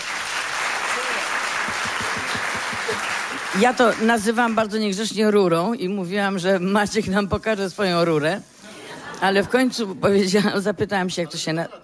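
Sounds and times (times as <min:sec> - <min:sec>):
audience applause: 0:00.0 - 0:04.6
speech: 0:03.6 - 0:08.5, 0:09.2 - 0:11.8.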